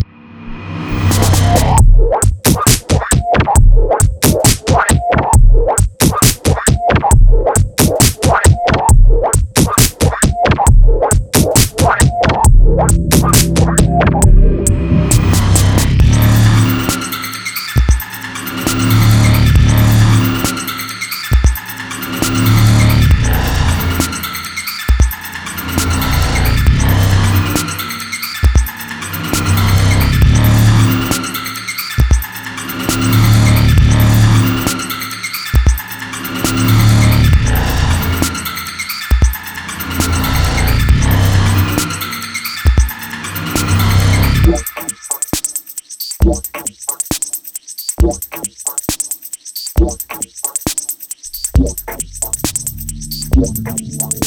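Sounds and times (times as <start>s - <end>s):
music beat: 1.0s - 54.2s.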